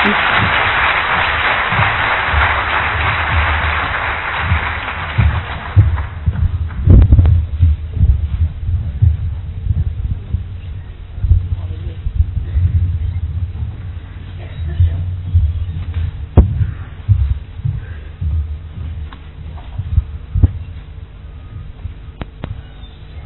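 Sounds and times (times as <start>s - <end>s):
applause welcoming a woman speaker at a spiritual gathering: 0.0s - 6.8s
scattered low thumps: 0.0s - 23.2s.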